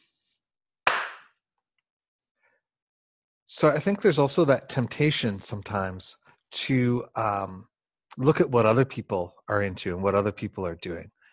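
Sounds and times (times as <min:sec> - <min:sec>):
single hand clap: 0:00.8 - 0:01.4
speech: 0:03.5 - 0:11.2.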